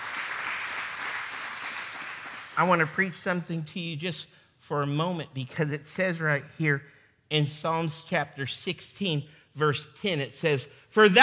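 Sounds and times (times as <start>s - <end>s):
congregation clapping hands in praise during a church service: 0.0s - 3.1s
speech: 2.6s - 11.2s.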